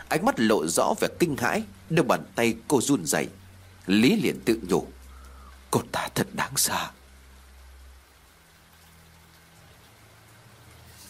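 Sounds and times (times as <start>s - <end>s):
heavy rain falling: 0.0s - 11.0s
speech: 0.1s - 5.0s, 5.7s - 7.0s.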